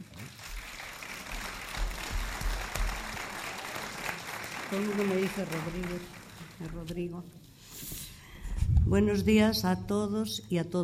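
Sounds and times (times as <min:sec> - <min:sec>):
audience applause: 0:00.0 - 0:06.8
speech: 0:04.7 - 0:07.4, 0:08.9 - 0:10.8
dull low thumps: 0:08.5 - 0:10.0.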